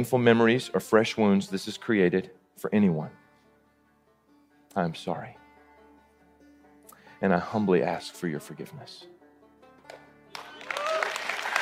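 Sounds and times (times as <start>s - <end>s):
speech: 0.0s - 3.2s, 4.7s - 5.4s, 7.2s - 9.1s
audience applause, standing ovation: 9.9s - 11.6s.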